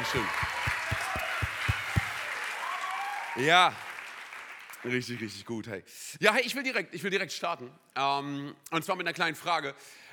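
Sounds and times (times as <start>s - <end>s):
audience applause: 0.0s - 5.2s
speech: 0.1s - 0.5s, 3.4s - 3.9s, 4.8s - 10.0s
regular low thumping beat: 0.4s - 2.2s.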